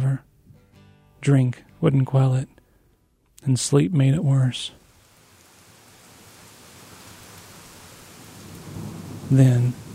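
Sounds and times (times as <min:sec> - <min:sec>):
speech: 0:01.2 - 0:02.6, 0:03.4 - 0:04.8, 0:09.3 - 0:09.8
heavy rain: 0:04.7 - 0:09.9
thunder: 0:08.2 - 0:09.9.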